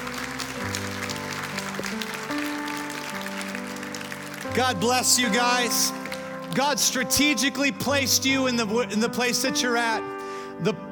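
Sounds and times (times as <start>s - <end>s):
audience clapping: 0.0s - 7.3s
speech: 4.5s - 10.9s.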